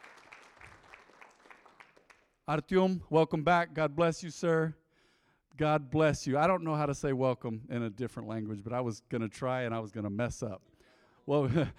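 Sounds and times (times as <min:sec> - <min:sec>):
audience clapping: 0:00.0 - 0:02.4
speech: 0:02.5 - 0:04.8, 0:05.6 - 0:11.7.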